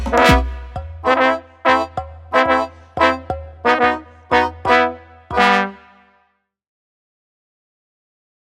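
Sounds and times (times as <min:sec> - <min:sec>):
Balkan brass band underscore: 0:00.0 - 0:06.1.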